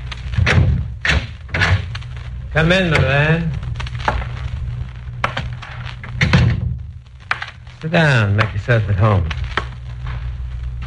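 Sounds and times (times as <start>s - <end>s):
low rumble: 0.0s - 10.8s
door being opened with heavy wooden thuds and clunks: 0.4s - 1.8s, 6.2s - 6.8s
speech: 2.6s - 3.7s, 7.8s - 9.4s.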